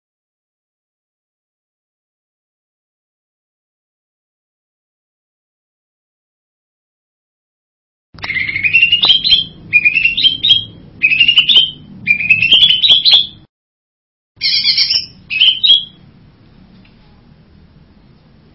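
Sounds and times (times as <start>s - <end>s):
bird buzzy whistled song: 8.2s - 13.5s, 14.4s - 16.1s.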